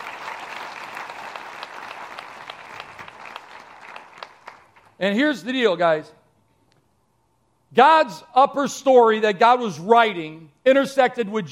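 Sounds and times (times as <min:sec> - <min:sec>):
audience applause: 0:00.0 - 0:05.0
speech: 0:05.0 - 0:06.2, 0:07.7 - 0:11.5.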